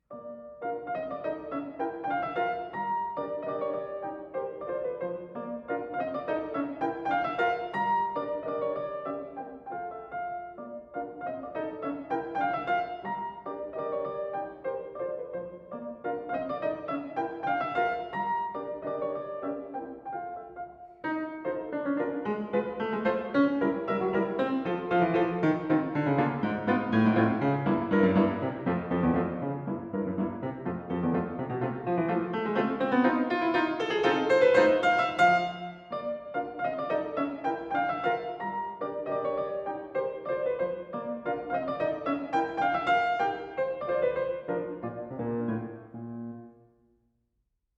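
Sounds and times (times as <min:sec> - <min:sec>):
polka on piano: 0:00.0 - 0:46.7.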